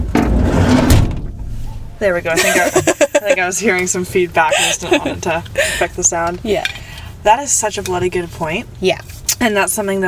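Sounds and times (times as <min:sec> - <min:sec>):
door being shut: 0:00.1 - 0:01.5
speech: 0:02.0 - 0:10.0
laughter: 0:02.3 - 0:03.7, 0:04.4 - 0:06.0.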